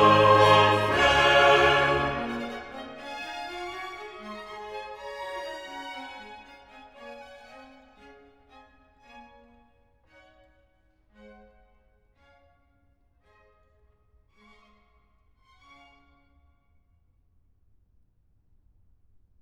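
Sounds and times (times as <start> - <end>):
choir singing: 0.0 - 3.2.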